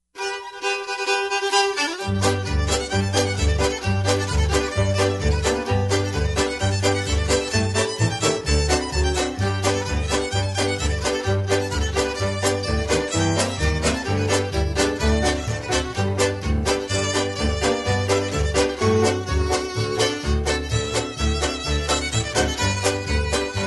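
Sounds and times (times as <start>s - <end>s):
square dance music: 0.2s - 23.6s.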